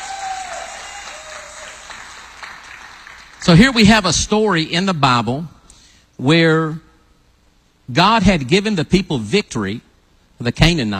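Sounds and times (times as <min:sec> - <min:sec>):
church congregation applauding during a morning service: 0:00.0 - 0:03.9
speech: 0:03.4 - 0:05.6, 0:06.2 - 0:06.8, 0:07.9 - 0:09.8, 0:10.4 - 0:10.9.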